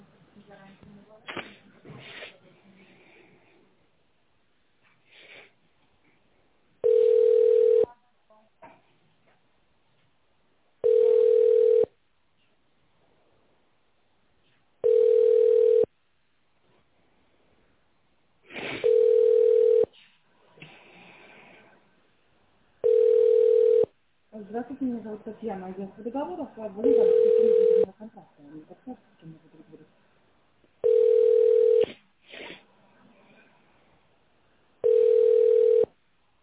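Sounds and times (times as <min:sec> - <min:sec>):
telephone ringback tone: 0:06.8 - 0:07.9, 0:10.8 - 0:11.9, 0:14.8 - 0:15.9, 0:18.8 - 0:19.9, 0:22.8 - 0:23.9, 0:26.8 - 0:27.9, 0:30.8 - 0:31.8, 0:34.8 - 0:36.0
speech: 0:24.6 - 0:30.0.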